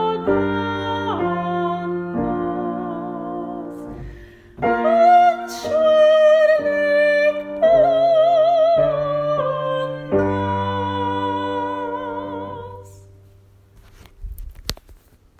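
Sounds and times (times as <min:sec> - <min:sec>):
tenor singing: 0:00.0 - 0:13.1.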